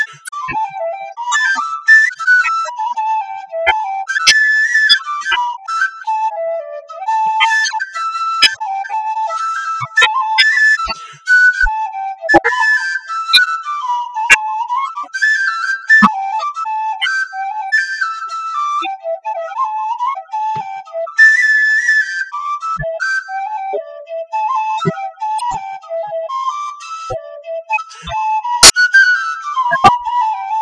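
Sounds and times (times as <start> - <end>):
whistle: 0.0 - 30.5.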